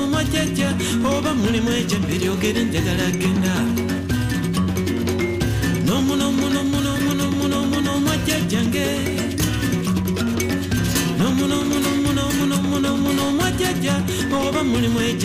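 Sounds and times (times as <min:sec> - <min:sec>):
traditional Luganda music: 0:00.0 - 0:15.2.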